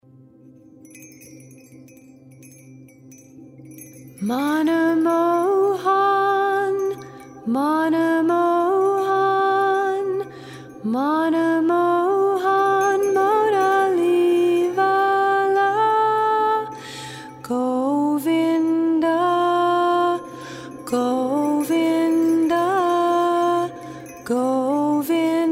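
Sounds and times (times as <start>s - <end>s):
sacred chanting for meditation and prayer: 4.1s - 25.5s.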